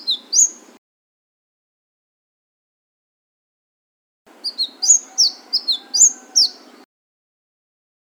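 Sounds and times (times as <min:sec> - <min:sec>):
Flame-breasted sunbird song of shrill slurred chirps: 0:00.0 - 0:00.8, 0:04.3 - 0:06.9.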